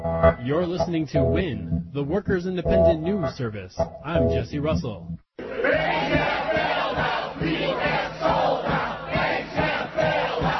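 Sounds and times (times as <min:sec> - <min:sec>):
speech: 0:00.2 - 0:06.4
protest crowd chanting in the streets of Madison Wisconsin: 0:05.4 - 0:10.5.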